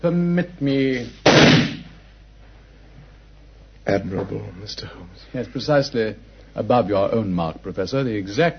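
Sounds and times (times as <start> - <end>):
speech: 0.0 - 1.8, 3.9 - 8.5
gunshot fired at a wall beside a bullet mark: 1.2 - 2.0.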